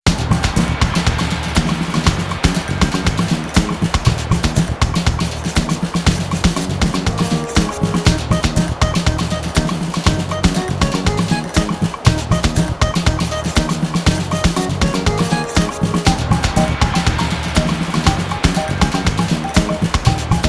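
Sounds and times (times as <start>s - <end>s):
batucada background music mix: 0.0s - 20.4s.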